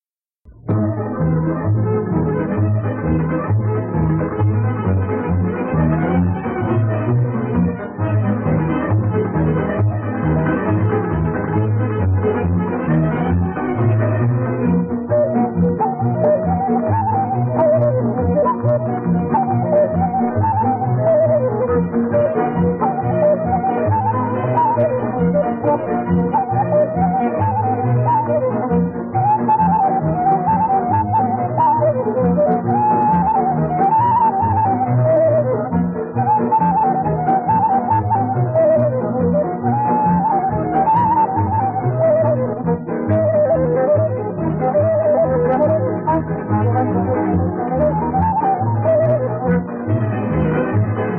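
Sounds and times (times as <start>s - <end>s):
Romanian hora folk dance music: 0.4s - 51.1s.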